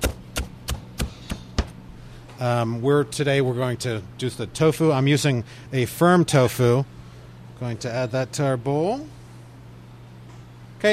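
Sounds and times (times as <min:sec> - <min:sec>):
knife chopping scallions thinly on a bias on a cutting board: 0:00.0 - 0:01.8
speech: 0:02.4 - 0:07.0, 0:07.6 - 0:09.2.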